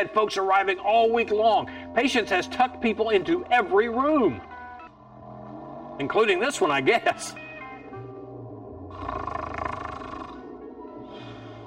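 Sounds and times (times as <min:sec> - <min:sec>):
speech: 0:00.0 - 0:04.5, 0:06.0 - 0:07.4
low rumbling snoring: 0:08.9 - 0:10.6.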